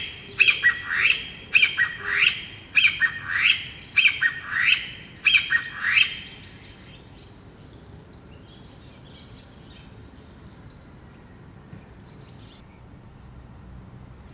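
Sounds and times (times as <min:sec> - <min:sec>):
Chinese bamboo partridge call: 0:00.0 - 0:07.0.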